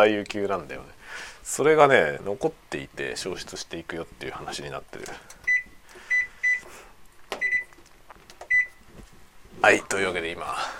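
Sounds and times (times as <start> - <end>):
speech: 0.0 - 5.4, 9.6 - 10.7
washing machine control panel beeps: 5.4 - 6.6, 7.4 - 7.8, 8.5 - 8.8.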